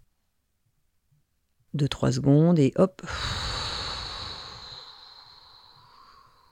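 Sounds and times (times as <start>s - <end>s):
speech: 1.8s - 3.5s
deep breath exhaled: 3.0s - 6.5s.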